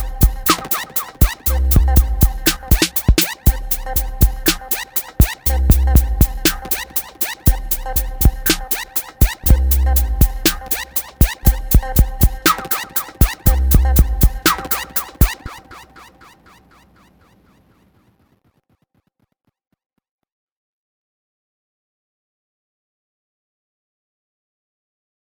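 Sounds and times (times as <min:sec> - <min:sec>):
music loop: 0:00.0 - 0:16.2.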